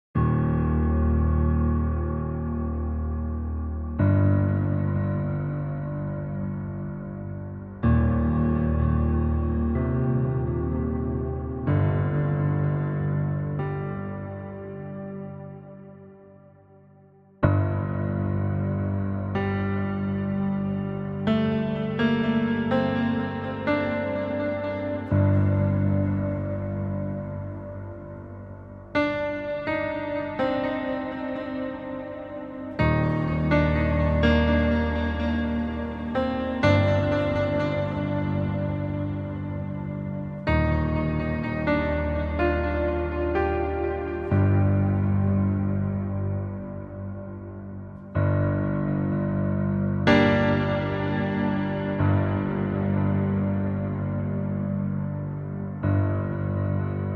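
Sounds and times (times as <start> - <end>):
piano: 0.0 - 57.1.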